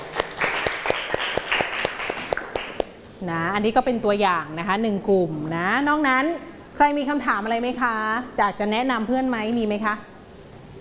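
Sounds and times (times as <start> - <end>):
classroom applause: 0.0 - 2.9
speech: 3.2 - 10.1.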